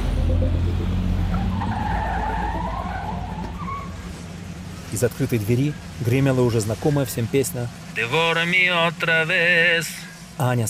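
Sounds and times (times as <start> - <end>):
yellow LiAZ bus skidding to a sudden stop: 0.0 - 4.4
speech: 0.4 - 1.0, 4.9 - 10.6.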